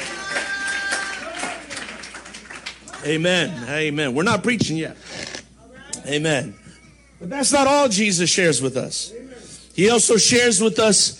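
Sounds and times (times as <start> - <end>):
audience clapping: 0.0 - 3.6
speech: 3.0 - 5.2, 6.1 - 6.6, 7.2 - 11.1.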